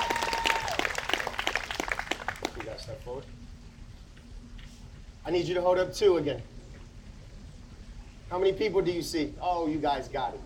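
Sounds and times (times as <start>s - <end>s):
audience clapping: 0.0s - 2.9s
speech: 3.1s - 3.4s, 5.2s - 6.5s, 8.3s - 10.4s.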